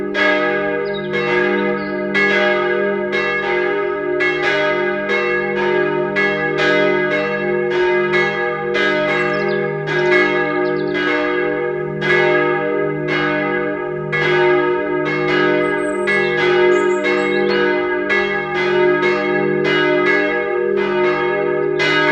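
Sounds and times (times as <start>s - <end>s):
bell concert: 0.0s - 22.1s.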